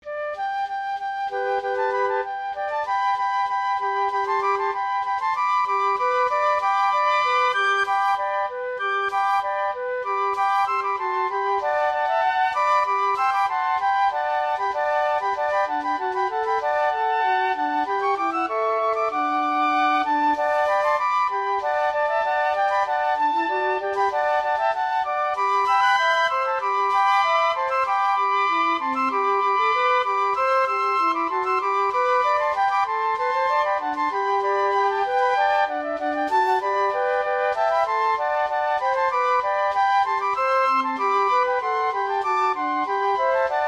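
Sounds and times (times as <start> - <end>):
flute trio playing a rejouissance: 0.0 - 43.6.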